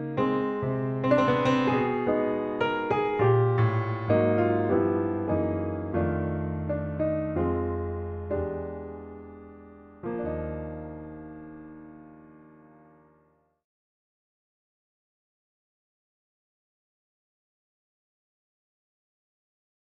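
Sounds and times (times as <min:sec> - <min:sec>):
jazz piano improvisation: 0:00.0 - 0:13.0.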